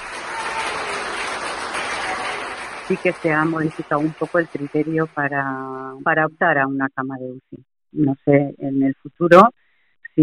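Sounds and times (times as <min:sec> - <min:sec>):
hospital staff applauding patient leaving ICU: 0:00.0 - 0:05.8
speech: 0:02.9 - 0:09.6.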